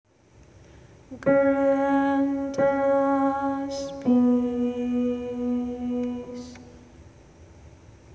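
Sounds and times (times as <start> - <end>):
soprano singing: 1.1 - 6.9.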